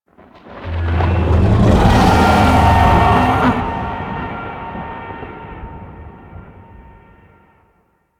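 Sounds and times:
distant idle void dragon vocal: 0:01.0 - 0:04.3.

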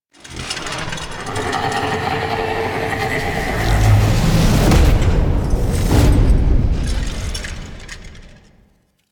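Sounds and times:
music: 0:01.7 - 0:08.9.

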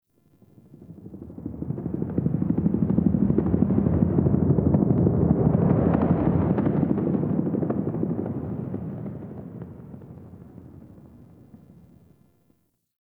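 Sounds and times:
distant helicopter: 0:00.4 - 0:12.2.

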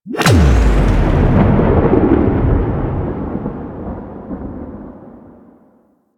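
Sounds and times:
portal opening: 0:00.0 - 0:02.4.

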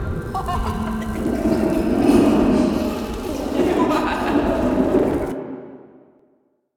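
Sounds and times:
creepy laugh: 0:00.1 - 0:05.3.

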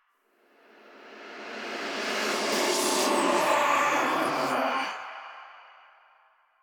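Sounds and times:
whispers in a cave: 0:01.8 - 0:05.9.

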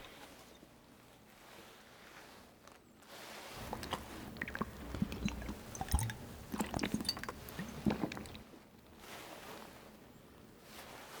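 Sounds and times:
drinking foley: 0:03.6 - 0:08.6.

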